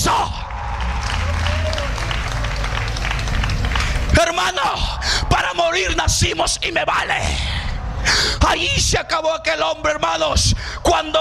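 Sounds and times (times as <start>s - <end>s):
audience applause: 0.5s - 5.2s
speech: 4.5s - 11.2s.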